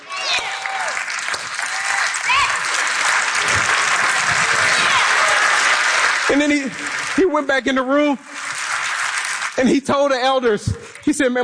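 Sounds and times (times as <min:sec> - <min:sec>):
slow clapping: 0:00.3 - 0:07.5, 0:08.2 - 0:09.6
speech: 0:06.3 - 0:08.3, 0:09.6 - 0:11.4.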